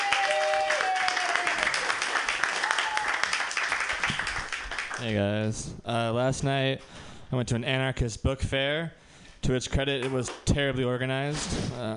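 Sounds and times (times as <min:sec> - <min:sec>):
high whoop: 0:00.0 - 0:02.0, 0:02.6 - 0:03.4
applause at an open mic comedy night: 0:00.0 - 0:05.0
speech: 0:05.0 - 0:11.9.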